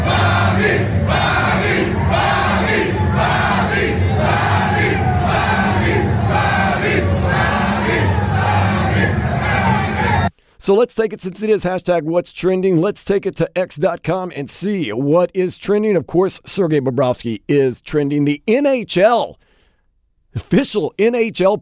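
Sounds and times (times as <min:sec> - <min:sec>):
hockey fans in an NHL arena chanting for a goalie: 0:00.0 - 0:10.3
speech: 0:10.6 - 0:19.4, 0:20.4 - 0:21.5.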